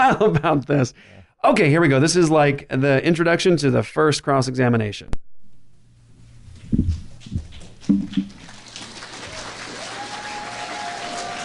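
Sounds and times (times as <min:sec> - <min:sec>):
speech: 0:00.1 - 0:05.3, 0:06.7 - 0:08.3
audience cheering and applauding: 0:08.3 - 0:11.4.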